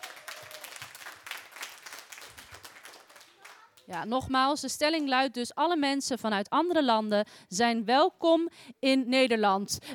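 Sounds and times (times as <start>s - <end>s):
audience at a Dutch debate event applauding: 0.0s - 3.7s
speech: 3.9s - 9.9s.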